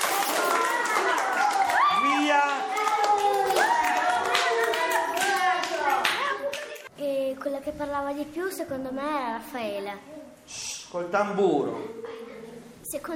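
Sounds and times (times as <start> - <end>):
applause: 0.0 - 6.9
speech: 7.8 - 12.0, 12.9 - 13.1.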